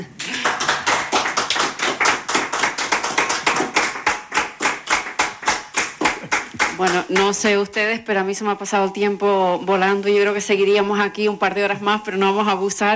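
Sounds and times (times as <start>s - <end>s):
audience applause: 0.1s - 6.9s
speech: 6.8s - 12.9s.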